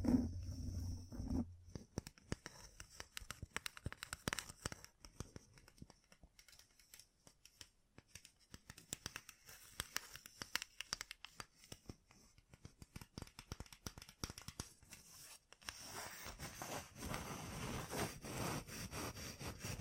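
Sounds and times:
low rumbling: 0.0 - 1.6
gem-covered fingertips tapping and scratching: 0.0 - 19.8.

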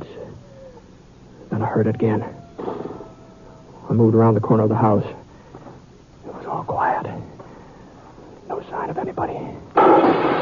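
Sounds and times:
speech: 1.6 - 2.4, 3.9 - 5.2, 9.0 - 10.4
revolver gunshots fired in the dark: 9.8 - 10.4.

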